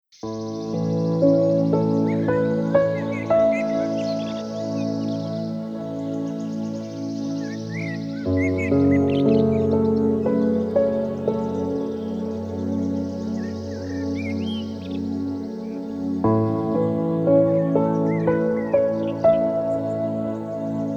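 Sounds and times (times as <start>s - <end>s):
birds: 0.1s - 20.9s
relaxing melodies: 0.2s - 20.9s.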